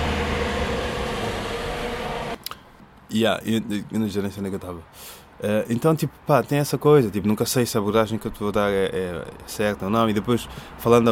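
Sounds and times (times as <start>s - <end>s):
bus passing by: 0.0s - 2.4s
speech: 3.1s - 11.1s.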